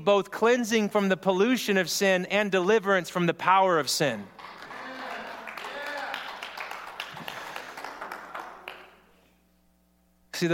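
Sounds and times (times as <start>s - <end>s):
speech: 0.0s - 4.5s
audience clapping: 4.3s - 9.2s.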